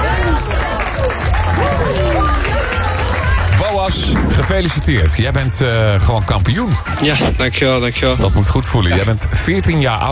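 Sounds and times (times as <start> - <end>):
crowd cheering and whooping: 0.0 - 4.4
crowd applause: 0.0 - 8.2
speech: 4.5 - 10.1.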